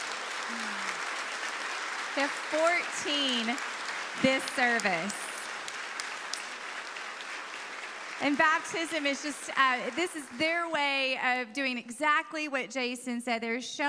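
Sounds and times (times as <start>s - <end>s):
audience applause: 0.0s - 11.1s
speech: 2.2s - 5.2s, 8.2s - 13.8s.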